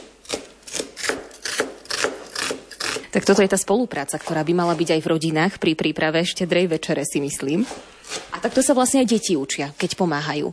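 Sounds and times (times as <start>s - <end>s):
chopping onion on cutting board: 0.0s - 3.0s
speech: 3.2s - 10.5s.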